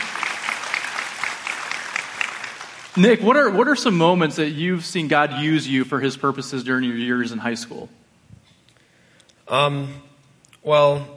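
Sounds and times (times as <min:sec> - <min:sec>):
audience applause: 0:00.0 - 0:03.7
speech: 0:03.0 - 0:08.0, 0:09.5 - 0:11.1.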